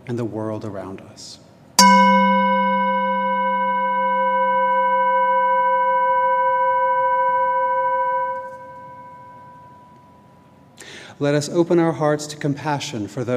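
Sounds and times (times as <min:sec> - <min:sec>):
speech: 0:00.1 - 0:02.0, 0:11.2 - 0:13.3
chime ringing: 0:01.8 - 0:10.6.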